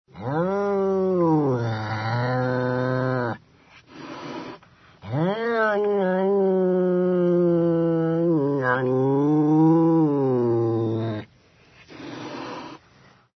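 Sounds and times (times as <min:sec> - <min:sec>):
cat: 0:01.2 - 0:11.3.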